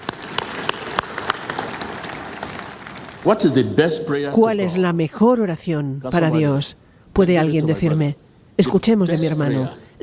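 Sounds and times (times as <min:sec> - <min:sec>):
audience applause: 0:00.0 - 0:03.8
speech: 0:03.2 - 0:10.0.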